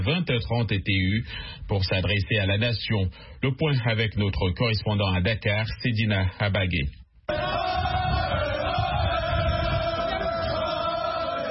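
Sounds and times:
speech: 0.0s - 8.0s
large crowd cheering victory cries: 7.3s - 11.5s.

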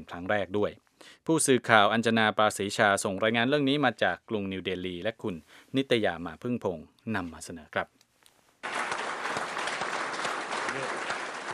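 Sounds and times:
speech: 0.0s - 8.0s
crowd applause: 8.6s - 11.5s
faint cheering voices: 8.6s - 11.5s.

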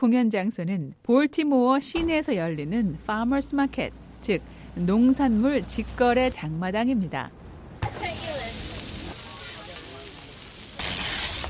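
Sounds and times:
speech: 0.0s - 8.2s
food sizzling on a hot griddle at a food truck: 7.8s - 11.4s.

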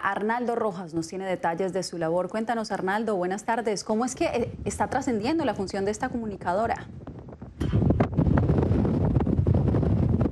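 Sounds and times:
speech: 0.1s - 7.0s
strong gust of desert wind in El Paso buffeting the microphone: 3.9s - 10.3s.

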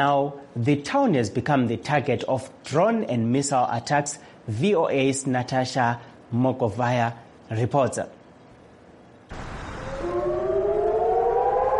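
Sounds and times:
speech: 0.0s - 8.2s
rocket attack warning siren: 9.3s - 11.7s.

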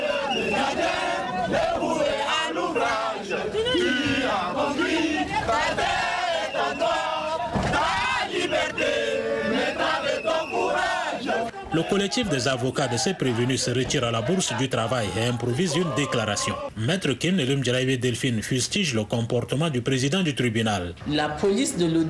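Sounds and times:
crowd singing the national anthem outside a courtroom: 0.0s - 16.7s
speech: 11.8s - 22.0s.

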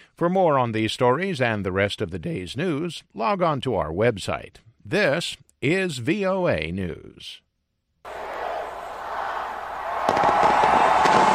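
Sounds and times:
speech: 0.2s - 7.4s
crowd roaring: 8.1s - 11.3s
fireworks display crackling and popping: 9.9s - 11.3s.

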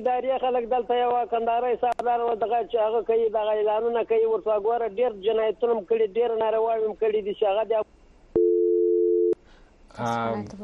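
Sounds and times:
speech: 0.0s - 8.0s, 10.0s - 10.6s
steady telephone tone as a call is cut off: 8.4s - 9.4s.

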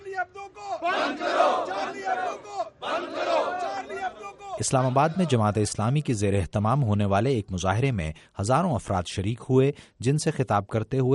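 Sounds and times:
protest crowd in Pakistan chanting slogans against France: 0.0s - 5.4s
speech: 4.6s - 11.1s.

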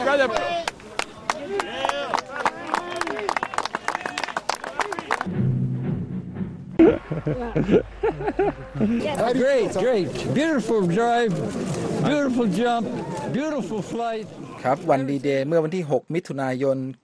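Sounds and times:
speech: 0.1s - 0.7s, 7.3s - 17.0s
people applauding: 0.6s - 5.3s
laughter: 6.8s - 10.3s.

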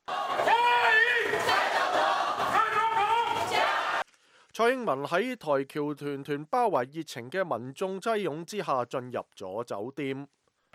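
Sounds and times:
crowd of hundreds cheering outside a hotel in Houston on a very cold day: 0.0s - 4.0s
speech: 4.6s - 10.7s.

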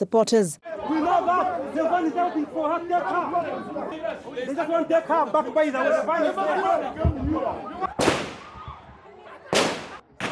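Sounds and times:
speech: 0.0s - 0.7s, 1.7s - 8.2s
gunshots fired into the air by prison officials: 8.0s - 8.6s, 9.5s - 10.3s.

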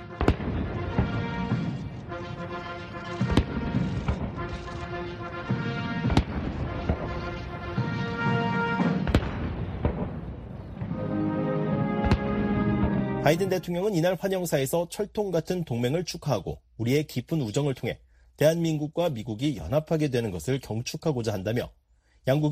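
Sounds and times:
cannon blasts from a 21-gun artillery salute at an official welcome ceremony: 0.0s - 11.0s, 11.8s - 13.2s
military band playing a sustained anthem: 0.0s - 13.9s
speech: 13.3s - 22.5s.

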